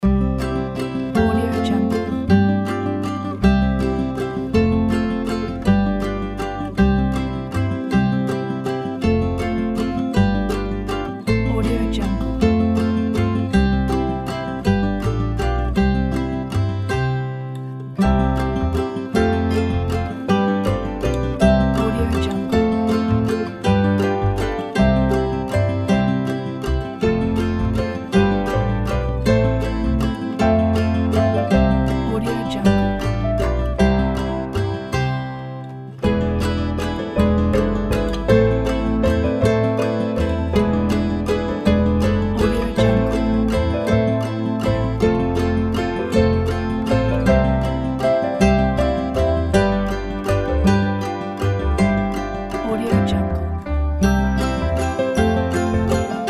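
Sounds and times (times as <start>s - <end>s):
ukulele: 0.0s - 56.2s
morning bells: 54.0s - 56.2s.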